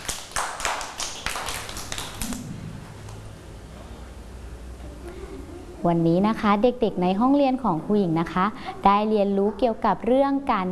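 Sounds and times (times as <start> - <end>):
children clapping: 0.0 - 2.4
speech: 5.8 - 10.7.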